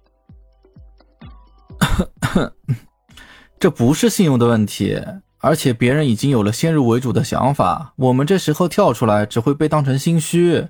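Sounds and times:
man coughing after choking: 1.8 - 3.3
speech: 2.0 - 2.9, 3.6 - 10.6.

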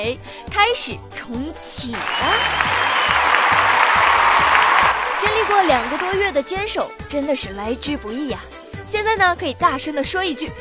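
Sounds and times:
speech: 0.0 - 3.7, 5.2 - 10.6
staff cheering and clapping in celebration after countdown: 1.9 - 6.4.

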